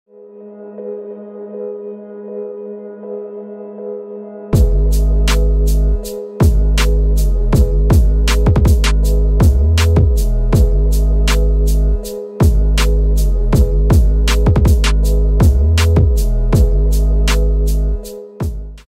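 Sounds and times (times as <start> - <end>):
hip hop music: 4.5 - 18.9.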